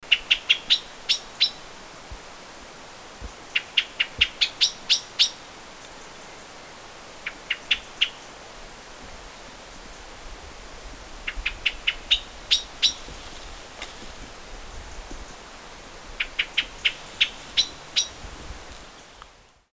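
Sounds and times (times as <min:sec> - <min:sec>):
common blackbird chink calls: 0:00.0 - 0:01.6, 0:03.4 - 0:05.4, 0:11.2 - 0:13.1, 0:16.2 - 0:18.2
quiet hiss: 0:00.0 - 0:19.7.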